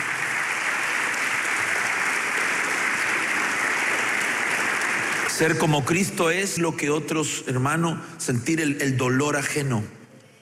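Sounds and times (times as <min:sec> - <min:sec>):
audience applause: 0:00.0 - 0:05.9
speech: 0:05.4 - 0:10.0.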